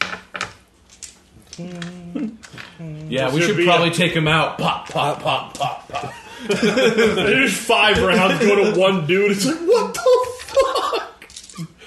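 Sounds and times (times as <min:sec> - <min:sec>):
speech: 0:01.6 - 0:10.3
laughter: 0:04.6 - 0:11.7
pile of dice rolling: 0:11.2 - 0:11.6.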